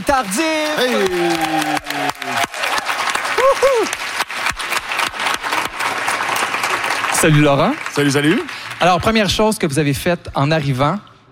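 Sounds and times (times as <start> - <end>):
audience applause: 0.0 - 9.3
speech: 0.1 - 2.6, 3.5 - 4.0, 7.2 - 11.1.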